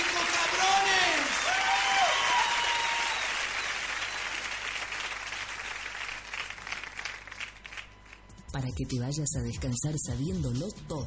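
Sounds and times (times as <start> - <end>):
audience applause: 0.0 - 8.2
speech: 8.6 - 11.0.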